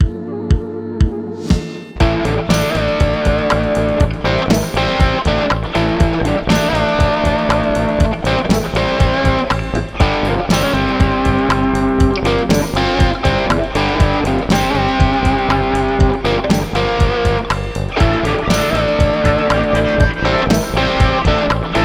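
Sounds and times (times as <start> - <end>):
hard rocking Casio keyboard beat: 1.5 - 21.8.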